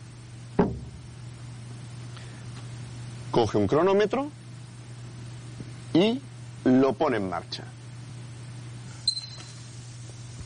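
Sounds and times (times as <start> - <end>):
piano lid being shut: 0.6 - 1.1
speech: 3.3 - 4.4, 6.0 - 7.8.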